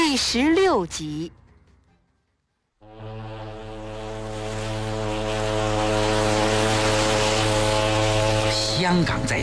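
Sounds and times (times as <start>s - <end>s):
speech: 0.1s - 1.4s, 8.9s - 9.4s
passenger ship whistle approaching dock: 2.9s - 9.3s.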